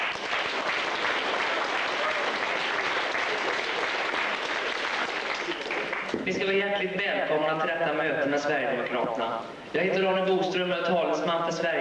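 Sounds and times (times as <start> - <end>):
audience applause: 0.0 - 6.2
speech: 6.4 - 11.7.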